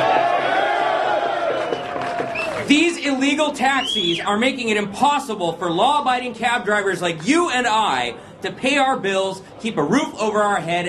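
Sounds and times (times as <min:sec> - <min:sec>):
crowd of taxi drivers at a protest cheering and shouting: 0:00.0 - 0:03.2
speech: 0:02.7 - 0:10.8.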